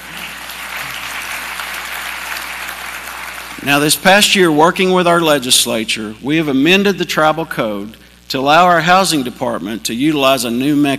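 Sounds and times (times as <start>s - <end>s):
people clapping: 0.0s - 4.4s
speech: 3.6s - 10.9s.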